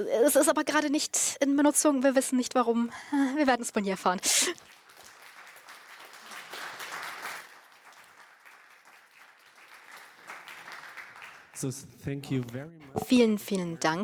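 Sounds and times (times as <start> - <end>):
speech: 0.0 - 4.8, 11.6 - 14.0
audience applause: 4.2 - 11.8.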